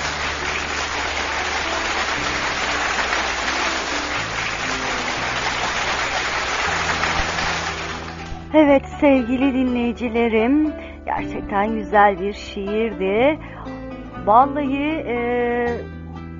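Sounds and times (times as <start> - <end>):
applause: 0.0 - 8.5
speech: 8.6 - 13.5, 14.3 - 16.0.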